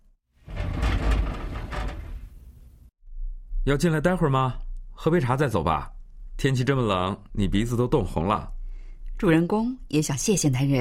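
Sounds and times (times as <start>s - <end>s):
sliding balcony door rumbling open: 0.4s - 2.9s
speech: 3.7s - 8.6s, 9.2s - 10.8s.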